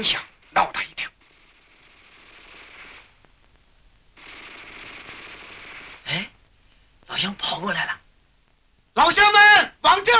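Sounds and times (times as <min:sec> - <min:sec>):
speech: 0:00.0 - 0:00.9, 0:07.2 - 0:08.0, 0:09.0 - 0:10.1
Japanese Type 11 light machine gun firing: 0:00.0 - 0:03.3, 0:04.2 - 0:06.4.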